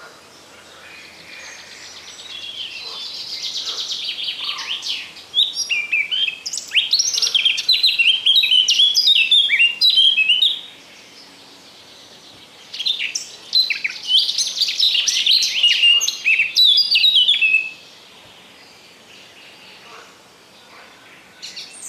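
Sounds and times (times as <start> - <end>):
Eurasian blackcap singing fast warbling song phrases: 1.5 - 10.8, 12.6 - 17.9.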